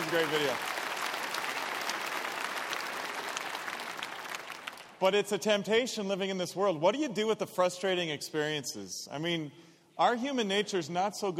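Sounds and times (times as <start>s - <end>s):
group applauding: 0.0s - 5.0s
speech: 0.1s - 0.7s, 5.0s - 11.3s.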